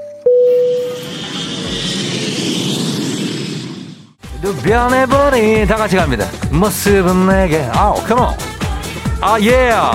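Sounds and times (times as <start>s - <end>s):
airplane taking off: 0.3s - 6.0s
speech: 4.6s - 8.5s, 9.2s - 9.9s.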